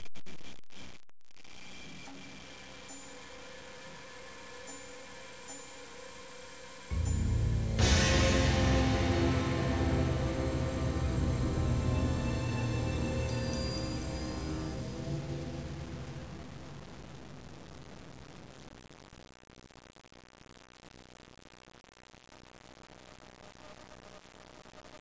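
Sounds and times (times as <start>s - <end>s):
garage music: 6.9s - 17.3s.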